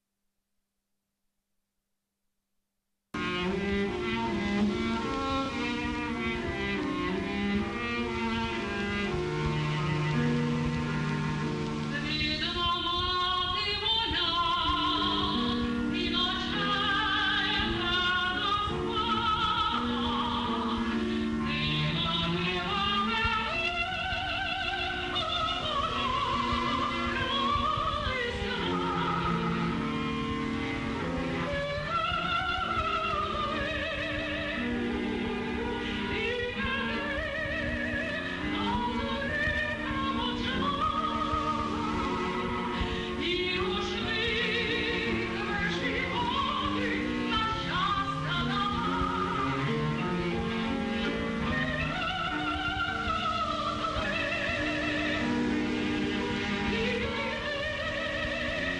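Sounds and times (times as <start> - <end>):
Ukrainian art song: 3.2 - 58.7.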